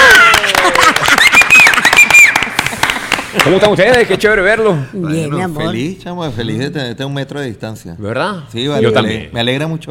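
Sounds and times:
people applauding themselves: 0:00.0 - 0:04.2
speech: 0:03.4 - 0:09.8.

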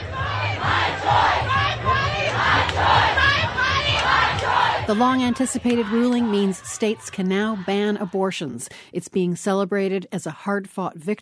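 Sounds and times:
crowd cheering and protesting in front of the US Supreme Court: 0:00.0 - 0:08.6
speech: 0:04.9 - 0:11.2.

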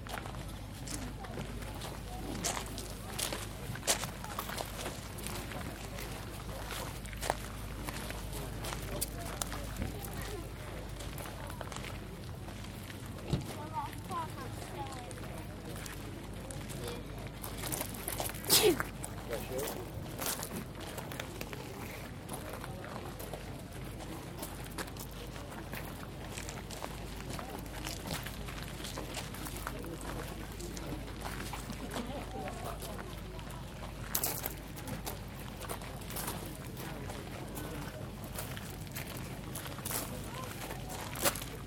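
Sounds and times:
Skirlington car boot market soundscape: 0:00.0 - 0:41.6.

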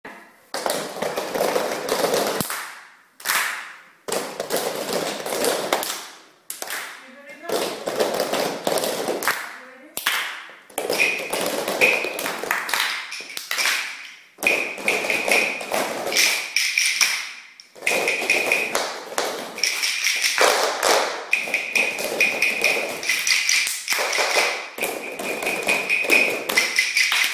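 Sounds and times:
percussion: 0:00.0 - 0:27.3.

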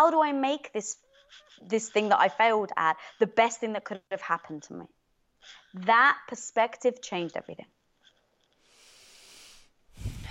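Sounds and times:
speech: 0:00.0 - 0:07.8
person taking a deep breath: 0:08.6 - 0:10.3.

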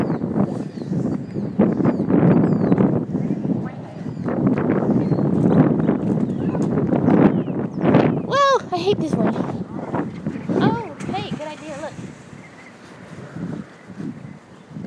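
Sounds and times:
strong wind: 0:00.0 - 0:14.8.

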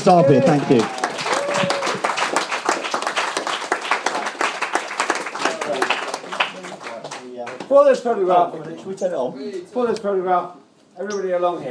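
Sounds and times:
speech: 0:00.0 - 0:01.0, 0:07.8 - 0:11.6
brief cheers: 0:00.0 - 0:02.2
audience applause: 0:00.0 - 0:07.7.

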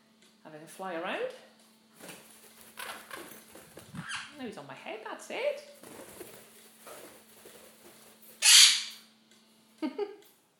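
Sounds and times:
speech: 0:00.4 - 0:02.2, 0:04.4 - 0:06.4
pet bird's brr call: 0:08.4 - 0:09.0.

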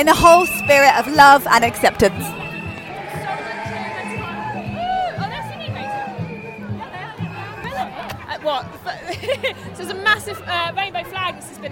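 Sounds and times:
speech: 0:00.0 - 0:02.4, 0:08.4 - 0:11.7
street crowd cheering and whooping: 0:00.0 - 0:08.1
laughter: 0:07.6 - 0:11.2.

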